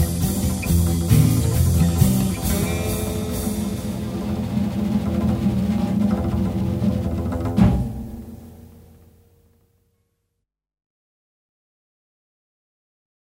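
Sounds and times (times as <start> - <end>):
blues music: 0.0 - 9.2.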